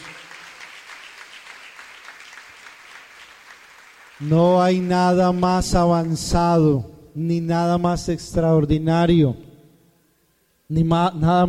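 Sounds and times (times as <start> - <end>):
audience applauding: 0.0 - 6.2
speech: 4.2 - 9.4, 10.7 - 11.4.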